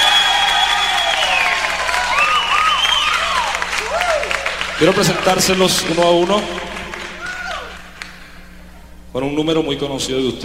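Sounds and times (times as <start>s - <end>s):
whoops and whistles: 0.0s - 4.5s
audience applause: 0.0s - 8.3s
speech: 4.8s - 6.7s, 9.2s - 10.4s.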